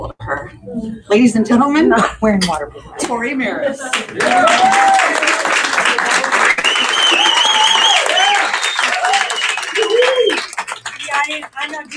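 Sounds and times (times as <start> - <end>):
speech: 0.7 - 5.3
audience applause: 3.9 - 11.9.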